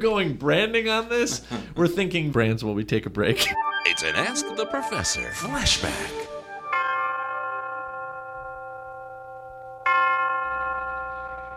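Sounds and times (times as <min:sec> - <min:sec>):
speech: 0:00.0 - 0:06.4
University of Detroit Tower chimes ringing: 0:03.4 - 0:11.5.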